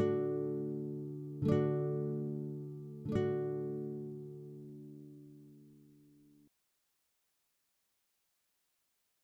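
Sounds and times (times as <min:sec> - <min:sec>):
little waltz for acoustic guitar: 0:00.0 - 0:06.5.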